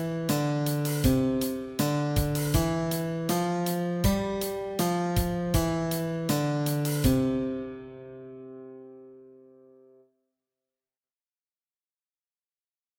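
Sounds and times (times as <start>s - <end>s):
guitar playing an exercise: 0.0s - 9.1s.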